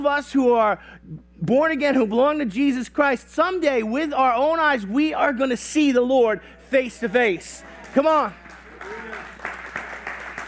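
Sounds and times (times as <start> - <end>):
speech: 0.0 - 9.6
audience applause: 7.6 - 10.4
brief rising whoop: 8.8 - 9.4.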